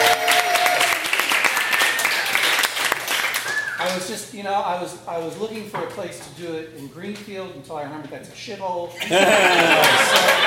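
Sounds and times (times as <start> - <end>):
audience applause at the Rendezvous: 0.0 - 3.9, 9.4 - 10.4
speech: 4.0 - 10.4
laughter: 9.0 - 10.4.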